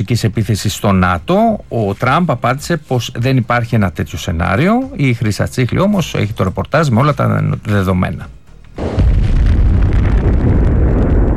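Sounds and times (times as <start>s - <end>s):
speech: 0.0s - 8.4s
Russian drone explosion in parking lot: 8.8s - 11.3s.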